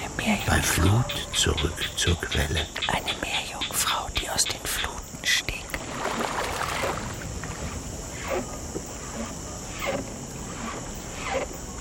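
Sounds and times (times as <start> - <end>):
speech: 0.2 - 4.6
canoe paddle moving through water: 5.8 - 11.7.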